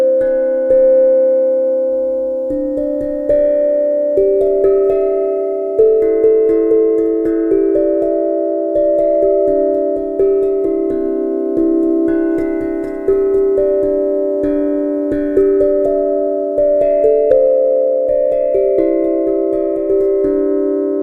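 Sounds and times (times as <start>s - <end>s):
C major pentatonic scale: 0.0s - 21.0s.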